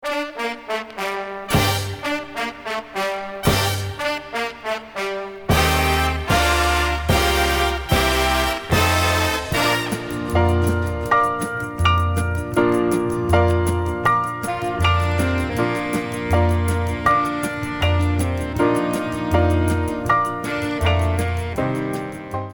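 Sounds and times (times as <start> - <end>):
piano: 0.0 - 22.5.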